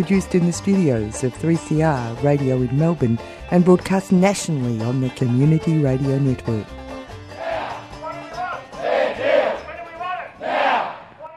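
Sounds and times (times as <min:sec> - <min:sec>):
speech: 0:00.0 - 0:06.8
union rally crowd chanting in street: 0:07.4 - 0:07.9, 0:08.8 - 0:09.7, 0:10.4 - 0:11.1.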